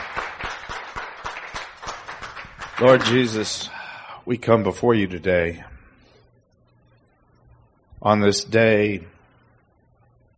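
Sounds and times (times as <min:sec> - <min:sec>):
church congregation clapping in rhythm: 0:00.0 - 0:03.6
speech: 0:02.8 - 0:05.7, 0:08.0 - 0:09.2.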